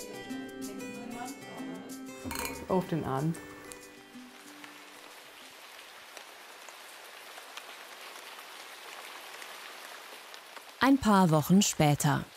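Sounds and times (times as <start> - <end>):
speech: 2.2 - 3.5, 10.9 - 12.3
rain falling: 2.6 - 12.3.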